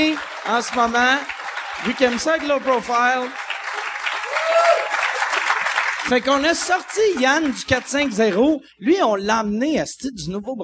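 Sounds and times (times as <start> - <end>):
speech: 0.0 - 3.4, 6.1 - 10.6
audience applause: 0.0 - 8.6.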